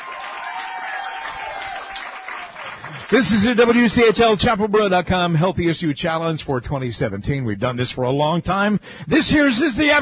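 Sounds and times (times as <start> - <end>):
audience applause for a guest at a health challenge event: 0.0 - 4.2
speech: 3.1 - 10.0.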